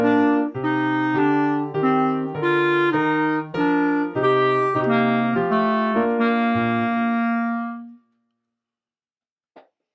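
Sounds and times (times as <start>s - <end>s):
clarinet dance tune slowed down: 0.0s - 8.2s.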